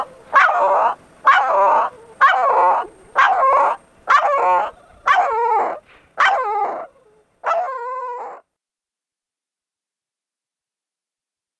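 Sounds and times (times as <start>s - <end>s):
distressed dog whining yelps: 0.0s - 8.4s.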